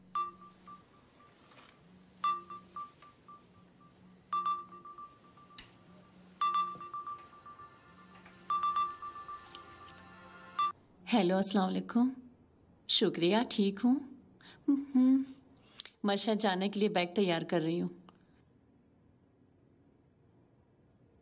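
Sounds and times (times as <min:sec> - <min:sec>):
ringback tone of an outgoing phone call: 0:00.0 - 0:10.8
speech: 0:11.1 - 0:12.2, 0:12.9 - 0:14.1, 0:14.7 - 0:15.3, 0:16.0 - 0:18.0.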